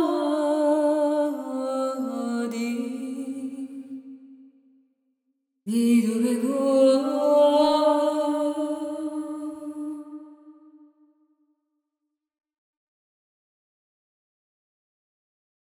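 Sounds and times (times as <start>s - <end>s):
woman singing: 0.0s - 4.4s, 5.7s - 10.7s.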